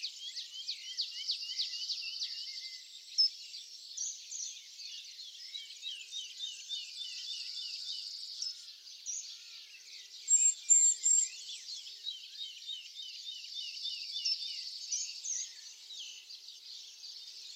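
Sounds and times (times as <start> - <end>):
chorus of other birds: 0.0 - 17.5.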